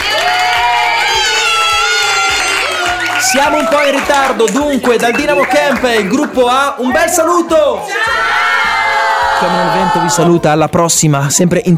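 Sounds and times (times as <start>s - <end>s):
children applauding and cheering: 0.0s - 6.5s, 8.0s - 10.3s
speech: 3.3s - 8.5s, 9.4s - 11.7s.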